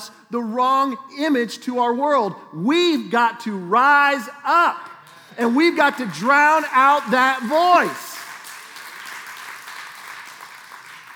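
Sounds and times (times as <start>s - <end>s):
speech: 0.3s - 8.1s
crowd clapping: 5.0s - 11.1s.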